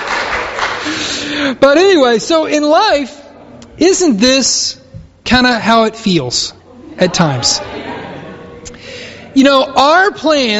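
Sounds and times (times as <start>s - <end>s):
audience applauding: 0.0s - 1.2s
speech: 1.4s - 3.2s, 3.8s - 7.8s, 9.3s - 10.5s
laughter: 6.7s - 9.4s.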